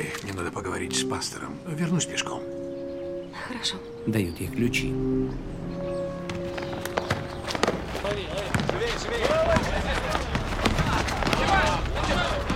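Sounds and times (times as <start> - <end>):
speech: 0.0 - 2.6, 3.3 - 5.9
ball bouncing during a ball game: 6.2 - 12.5
scuffling movement: 6.3 - 12.5.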